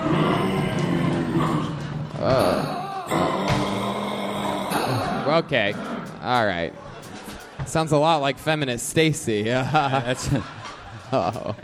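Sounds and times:
angry kangaroo roar sound effect: 0.0s - 6.2s
speech: 5.3s - 6.9s, 7.7s - 11.6s
laughter: 6.4s - 11.6s.

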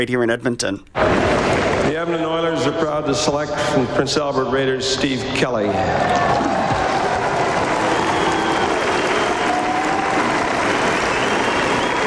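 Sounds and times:
speech: 0.0s - 6.5s
crowd shouting and cheering at a draft event: 5.4s - 12.0s
steady applause: 5.8s - 12.0s.

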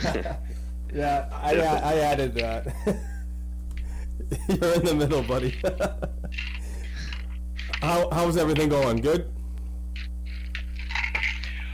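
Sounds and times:
laughter: 0.0s - 0.4s, 2.6s - 3.3s, 4.2s - 7.2s
speech: 0.0s - 3.1s, 4.2s - 6.5s, 7.8s - 9.4s
low steady hum: 0.0s - 11.7s
pills rattling in a plastic bottle: 6.3s - 7.8s, 10.0s - 11.7s.

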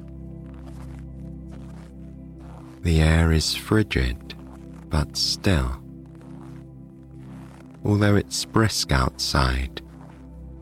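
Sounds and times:
boots crunching through thick snow: 0.0s - 10.5s
speech: 2.8s - 5.8s, 7.8s - 9.8s.

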